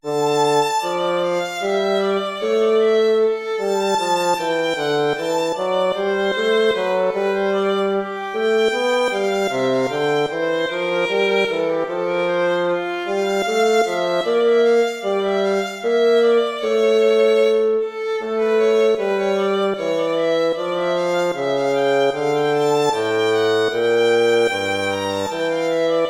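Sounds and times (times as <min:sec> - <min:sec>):
air and hornpipe tune: 0:00.0 - 0:26.0.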